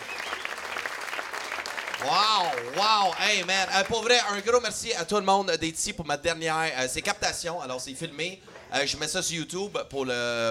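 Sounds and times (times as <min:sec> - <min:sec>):
audience applause: 0:00.0 - 0:04.3
speech: 0:02.0 - 0:10.4.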